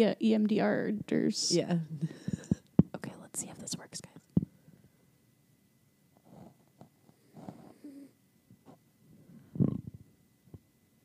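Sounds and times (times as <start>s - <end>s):
speech: 0.0s - 2.2s, 3.4s - 4.1s
person snoring while asleep: 7.3s - 8.1s.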